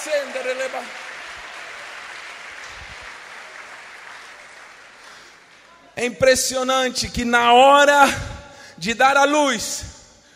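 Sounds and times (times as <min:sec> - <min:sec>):
speech: 0:00.0 - 0:01.1, 0:06.0 - 0:10.0
audience applause: 0:00.0 - 0:05.8.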